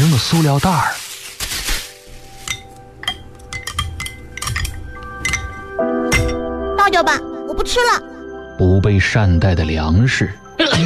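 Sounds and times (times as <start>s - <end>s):
speech: 0.2s - 1.0s, 6.9s - 10.8s
dishes and cutlery clinking: 2.3s - 6.5s.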